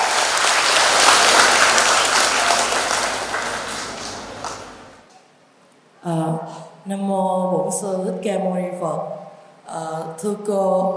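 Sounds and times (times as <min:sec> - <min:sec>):
crowd big round of applause: 0:00.0 - 0:05.0
speech: 0:06.0 - 0:10.9.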